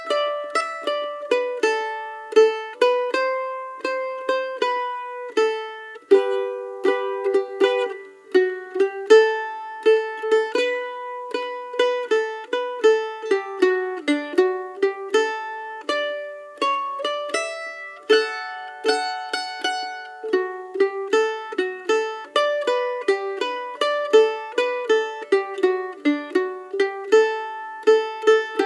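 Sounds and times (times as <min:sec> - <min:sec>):
practice version of a tune: 0:00.0 - 0:28.6.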